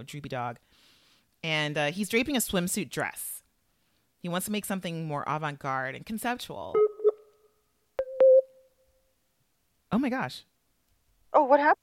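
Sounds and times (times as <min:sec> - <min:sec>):
speech: 0:00.0 - 0:03.4, 0:04.2 - 0:06.8, 0:09.9 - 0:10.5, 0:11.3 - 0:11.8
Skype notification sound: 0:08.0 - 0:08.6.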